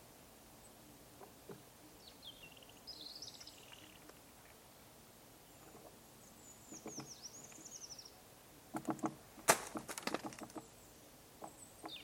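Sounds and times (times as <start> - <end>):
low steady hiss: 0.0 - 12.0
high thin bird chirps: 1.9 - 4.2, 5.4 - 8.2, 10.6 - 12.0
great spotted woodpecker knocking on a tree trunk: 8.7 - 10.7.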